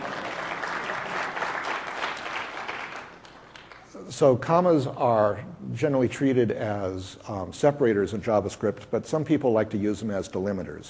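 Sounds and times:
audience applause: 0.0 - 3.8
speech: 4.1 - 10.8.

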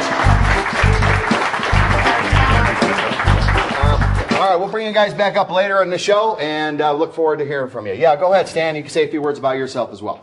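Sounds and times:
round of applause: 0.0 - 4.6
speech: 4.5 - 10.2.

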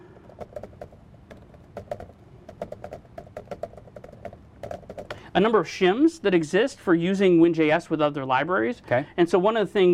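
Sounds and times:
typing on a computer keyboard: 0.0 - 5.3
speech: 5.3 - 9.9.

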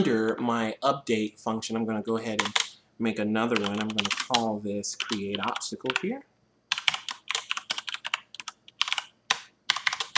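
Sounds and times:
speech: 0.0 - 6.3
typing on a computer keyboard: 2.4 - 2.7, 3.5 - 6.0, 6.7 - 10.1.

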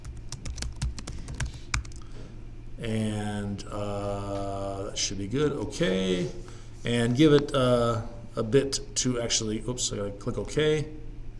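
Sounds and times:
login password typed on a computer keyboard: 0.0 - 2.0
speech: 2.8 - 11.0.

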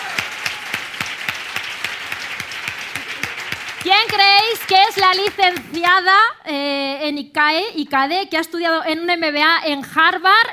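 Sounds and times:
audience applause: 0.0 - 5.8
speech: 3.8 - 10.5.

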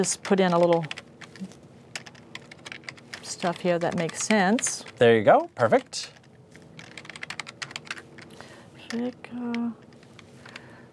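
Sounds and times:
speech: 0.0 - 1.6, 3.4 - 6.2, 8.9 - 9.8
fingers typing on a computer keyboard: 0.0 - 5.1, 5.7 - 10.7.

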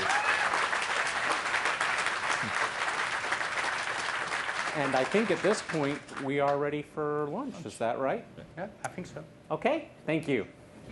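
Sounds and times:
audience applause for panelists: 0.0 - 6.3
speech: 4.8 - 10.6.

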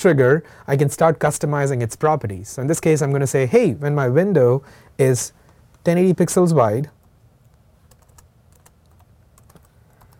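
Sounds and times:
speech: 0.0 - 7.0
typing on a computer keyboard: 7.9 - 10.1.

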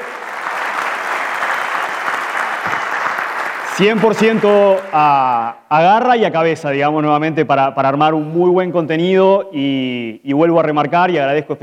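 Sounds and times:
audience clapping for the organizing team at a two-day event: 0.0 - 5.3
speech: 3.8 - 11.6.

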